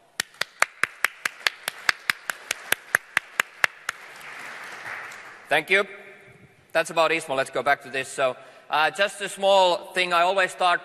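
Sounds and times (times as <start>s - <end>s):
audience applause: 0.4s - 5.5s
speech: 5.5s - 6.0s, 6.8s - 10.8s.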